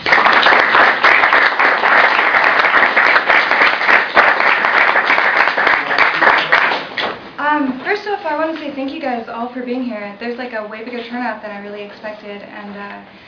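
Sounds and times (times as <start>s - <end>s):
audience applause and clapping: 0.0s - 7.2s
speech: 8.4s - 13.2s.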